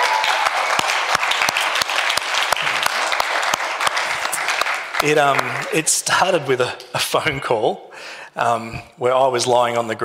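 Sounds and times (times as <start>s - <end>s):
audience applauding: 0.0s - 6.6s
speech: 5.0s - 10.0s.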